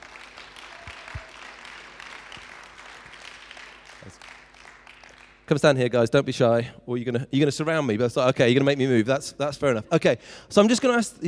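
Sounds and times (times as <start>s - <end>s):
audience applause: 0.0s - 5.5s
speech: 5.5s - 11.2s.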